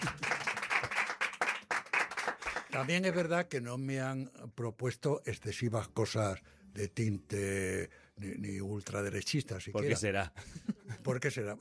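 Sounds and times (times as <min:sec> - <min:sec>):
a few friends clapping after a joke: 0:00.0 - 0:03.3
speech: 0:02.7 - 0:11.5.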